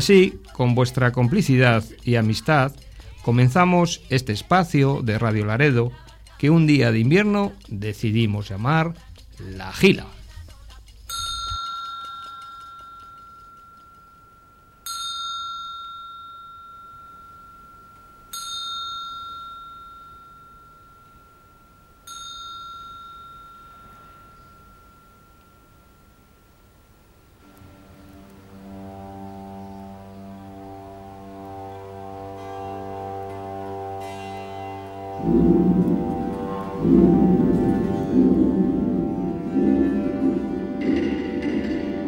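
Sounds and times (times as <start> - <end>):
speech: 0.0 - 10.2
bells ringing: 11.1 - 26.5, 28.6 - 42.0.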